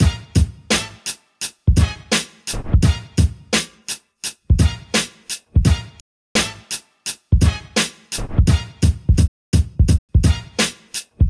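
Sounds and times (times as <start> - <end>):
full instrumental outro music: 0.0 - 11.2.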